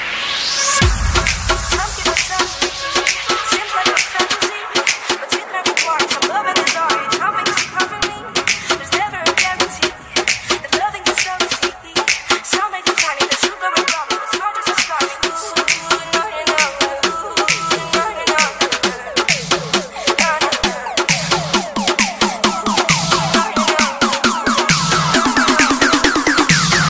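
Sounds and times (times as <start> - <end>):
dance music ringtone: 0.0 - 26.8.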